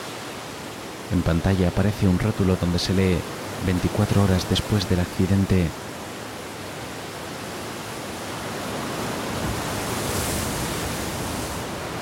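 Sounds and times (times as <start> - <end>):
speech: 1.1 - 5.9
waves breaking on wet sand in a cliff inlet: 2.9 - 12.0.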